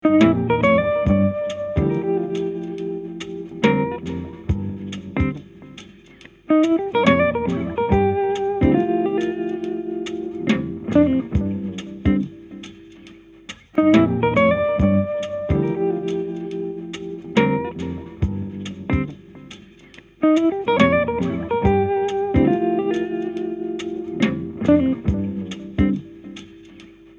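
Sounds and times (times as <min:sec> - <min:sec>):
jazzy music loop: 0:00.1 - 0:27.1.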